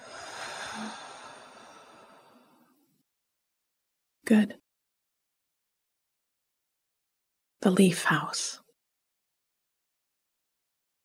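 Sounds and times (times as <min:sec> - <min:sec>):
slow exhale during a guided breathing exercise: 0:00.0 - 0:02.9
speech: 0:04.3 - 0:04.6, 0:07.6 - 0:08.6.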